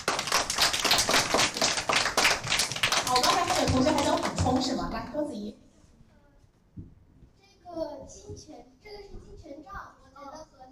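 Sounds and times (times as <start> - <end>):
classroom applause from students: 0.0 - 4.9
speech: 3.7 - 5.7.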